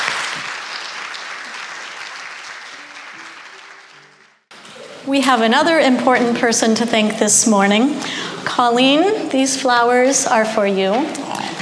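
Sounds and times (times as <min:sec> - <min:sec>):
audience applause: 0:00.0 - 0:04.6
speech: 0:05.0 - 0:11.5.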